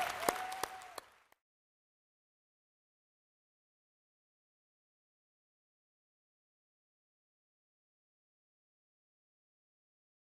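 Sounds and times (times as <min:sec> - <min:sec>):
crowd of people applauding together: 0:00.0 - 0:01.4.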